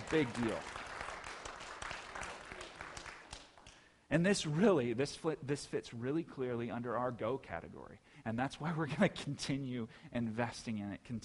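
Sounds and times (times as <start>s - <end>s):
crowd applause: 0.0s - 3.7s
speech: 0.1s - 0.8s, 4.1s - 11.2s.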